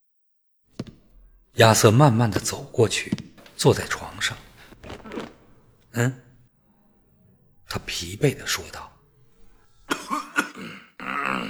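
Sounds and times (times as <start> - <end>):
speech: 1.6 - 4.4, 6.0 - 6.2, 7.7 - 8.9
man clearing his throat: 9.9 - 11.4
man coughing: 9.9 - 11.4.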